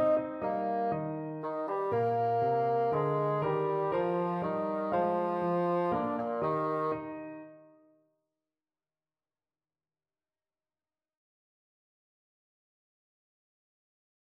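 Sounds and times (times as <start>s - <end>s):
German dance on bassoon: 0.0s - 7.4s.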